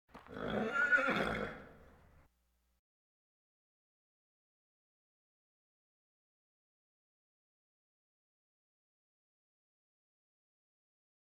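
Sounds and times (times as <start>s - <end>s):
farm animal snorts: 0.2s - 1.8s.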